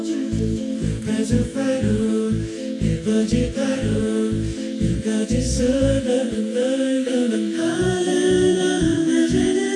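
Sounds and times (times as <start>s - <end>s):
a cappella chorus singing: 0.0s - 9.7s.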